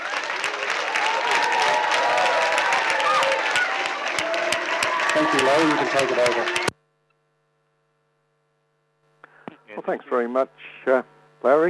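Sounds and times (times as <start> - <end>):
audience cheering: 0.0 - 6.7
speech: 5.2 - 6.7, 9.9 - 11.6.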